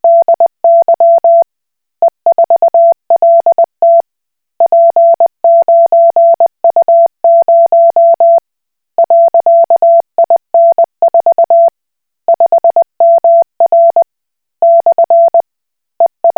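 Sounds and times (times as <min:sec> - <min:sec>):
Koch Morse code beeps: 0:00.0 - 0:01.4, 0:02.3 - 0:04.0, 0:04.6 - 0:08.4, 0:09.0 - 0:11.7, 0:12.3 - 0:15.4, 0:16.0 - 0:16.3.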